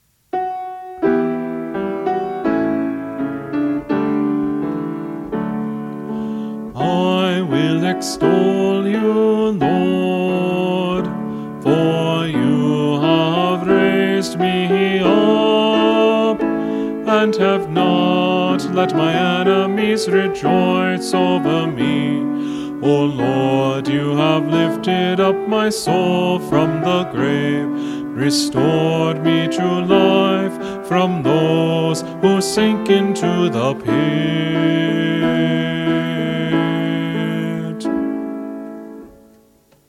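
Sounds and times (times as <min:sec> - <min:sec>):
choir practice melody: 0:00.5 - 0:39.2.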